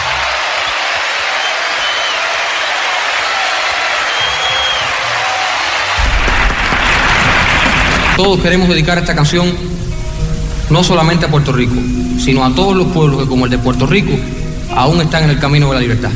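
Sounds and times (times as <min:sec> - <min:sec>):
audience applause: 0:00.0 - 0:08.2
faint cheers: 0:00.0 - 0:08.2
speech: 0:08.2 - 0:09.8, 0:10.7 - 0:16.1.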